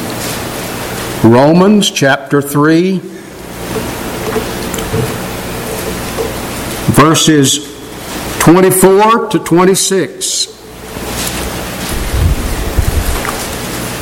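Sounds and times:
speech: 0:01.2 - 0:03.2, 0:07.0 - 0:07.7, 0:08.4 - 0:10.6
wind blowing outdoors: 0:11.9 - 0:13.7.

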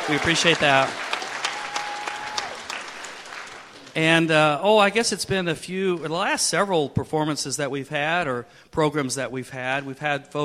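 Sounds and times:
audience applause after a Christmas performance: 0:00.0 - 0:04.1
speech: 0:00.1 - 0:01.1, 0:04.0 - 0:10.4.

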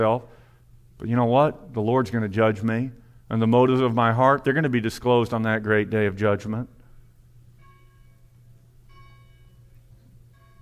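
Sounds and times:
speech: 0:00.0 - 0:00.4, 0:01.0 - 0:06.8
low hum: 0:00.0 - 0:10.5
bell tolling: 0:07.6 - 0:10.5.

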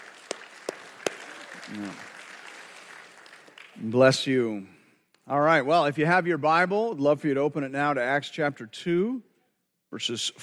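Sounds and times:
audience applause: 0:00.0 - 0:04.0
speech: 0:01.7 - 0:02.1, 0:03.8 - 0:09.3, 0:09.9 - 0:10.4.

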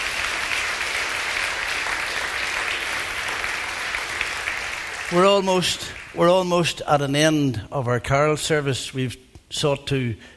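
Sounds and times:
audience applause: 0:00.0 - 0:06.2
speech: 0:05.1 - 0:10.3.

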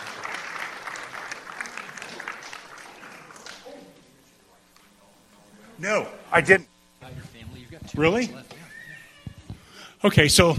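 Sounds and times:
audience clapping: 0:00.0 - 0:04.1
speech: 0:05.8 - 0:06.7, 0:07.7 - 0:08.6, 0:10.0 - 0:10.5.

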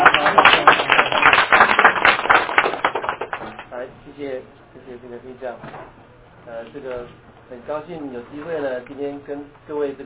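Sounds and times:
audience applause: 0:00.0 - 0:03.7
speech: 0:05.0 - 0:10.0.

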